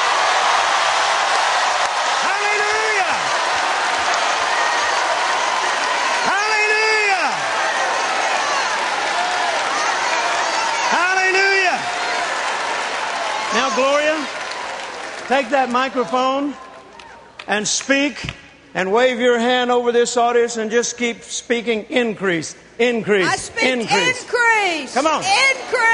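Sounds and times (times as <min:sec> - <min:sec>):
loud drawn-out shouts: 0:00.0 - 0:14.3
church congregation shouting and cheering for the Lord: 0:00.0 - 0:17.4, 0:23.3 - 0:25.9
speech: 0:15.3 - 0:16.6, 0:17.5 - 0:25.9.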